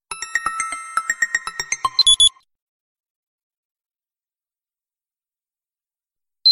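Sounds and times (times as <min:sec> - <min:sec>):
SMS tone ringtone: 0:00.1 - 0:02.4.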